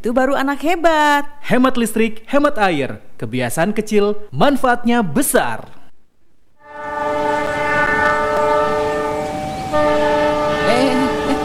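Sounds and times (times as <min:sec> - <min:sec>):
speech: 0:00.0 - 0:05.8
train horn blaring at a level crossing: 0:06.6 - 0:11.4
rumbling train wheels and rail noise: 0:06.8 - 0:11.4.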